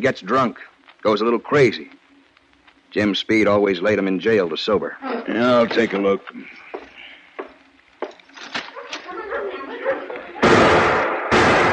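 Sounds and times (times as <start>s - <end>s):
speech: 0.0s - 2.0s, 2.9s - 6.6s
laughter: 8.7s - 10.6s
gunshots from an old trapper's gun in a frontier town: 10.4s - 11.7s.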